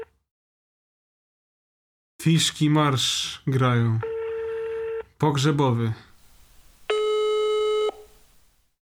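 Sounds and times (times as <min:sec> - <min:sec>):
speech: 0:02.3 - 0:04.1, 0:05.2 - 0:06.1
buzzy electronic telephone tone of a call reaching voicemail: 0:06.2 - 0:08.5.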